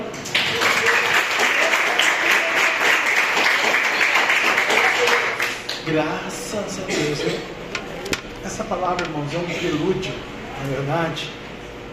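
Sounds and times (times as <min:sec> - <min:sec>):
audience applause: 0:00.3 - 0:05.8
speech: 0:05.9 - 0:07.6, 0:08.4 - 0:11.4.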